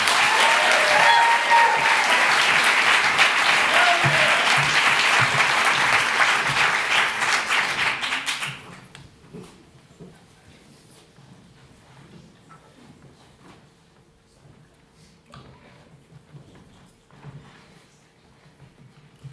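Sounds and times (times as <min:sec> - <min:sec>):
audience applause: 0:00.0 - 0:08.9.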